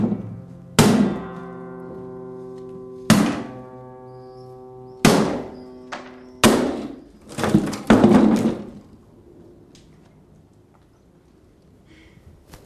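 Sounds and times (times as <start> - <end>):
acoustic guitar lying on the floor being smashed with wooden blows: 0.0 - 1.6, 2.9 - 3.8, 5.0 - 9.0
acoustic guitar strings ringing: 0.0 - 7.3.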